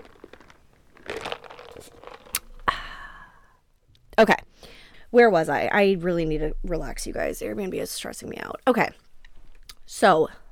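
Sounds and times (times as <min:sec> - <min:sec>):
ice cubes swirling in iced coffee: 0:00.0 - 0:02.7
speech: 0:04.2 - 0:04.5, 0:05.1 - 0:09.0, 0:09.9 - 0:10.4.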